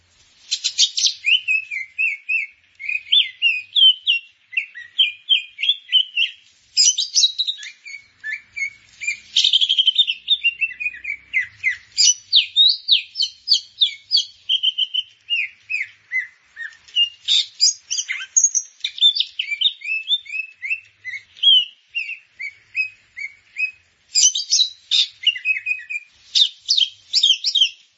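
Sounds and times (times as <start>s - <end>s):
grey-cheeked bulbul singing chattery whistles and high twitters: 0.5s - 27.9s.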